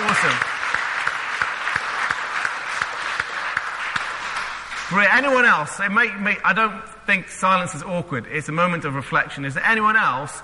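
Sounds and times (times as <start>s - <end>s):
crowd clapping: 0.0s - 5.5s
speech: 0.2s - 0.5s, 4.9s - 10.4s.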